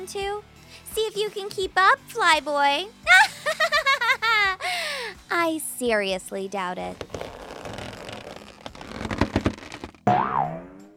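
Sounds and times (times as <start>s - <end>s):
speech: 0.0s - 3.2s, 5.3s - 7.2s
laughter: 3.1s - 4.6s
cartoon boing of a character bouncing like a giant Super Ball: 10.1s - 10.9s.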